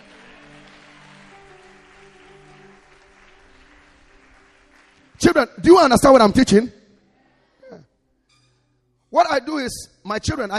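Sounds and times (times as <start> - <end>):
audience clapping hands: 0.0 - 6.3
speech: 5.2 - 6.8, 9.6 - 10.5.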